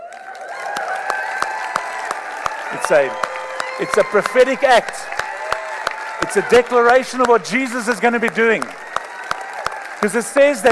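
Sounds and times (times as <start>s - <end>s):
audience clapping and cheering: 0.0s - 10.6s
speech: 2.7s - 5.2s, 6.3s - 8.8s, 10.0s - 10.6s.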